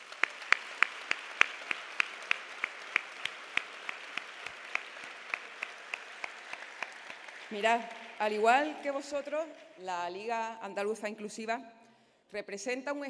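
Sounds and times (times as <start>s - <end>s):
audience applause: 0.0s - 9.8s
speech: 7.5s - 13.0s.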